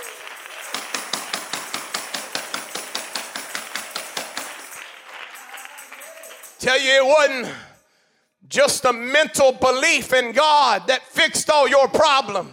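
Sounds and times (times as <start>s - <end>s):
audience clapping: 0.0s - 7.0s
speech: 6.6s - 7.7s, 8.5s - 12.5s.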